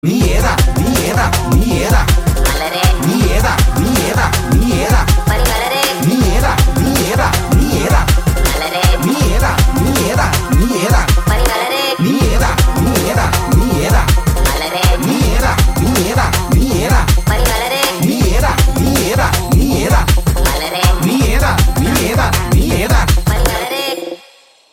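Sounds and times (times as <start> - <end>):
rapping: 0.0 - 24.2.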